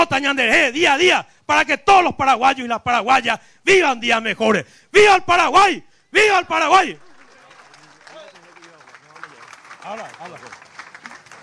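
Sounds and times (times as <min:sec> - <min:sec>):
speech: 0:00.2 - 0:07.1, 0:09.8 - 0:10.6
loud applause from audience: 0:06.8 - 0:11.4.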